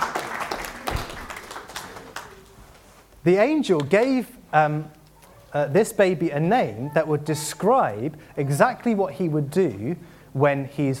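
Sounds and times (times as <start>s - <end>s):
crowd applauding: 0.0s - 2.6s
speech: 3.2s - 10.9s.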